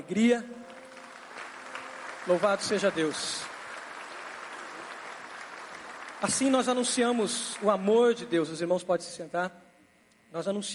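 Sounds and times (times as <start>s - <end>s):
speech: 0.0s - 0.6s, 2.3s - 3.5s, 6.2s - 9.6s, 10.3s - 10.7s
audience clapping: 0.5s - 8.3s.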